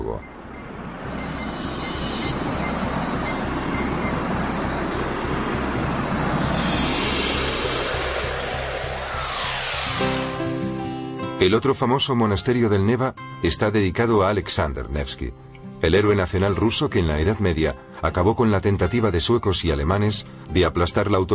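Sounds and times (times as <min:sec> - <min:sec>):
speech: 0:00.1 - 0:00.4, 0:11.4 - 0:21.3
metro train rumbling on Saint Petersburg's yellow line: 0:00.4 - 0:10.8.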